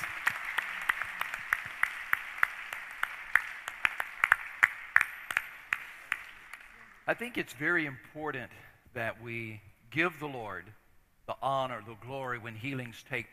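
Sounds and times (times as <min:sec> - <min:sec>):
audience clapping in praise: 0:00.0 - 0:07.3
speech: 0:07.1 - 0:13.3.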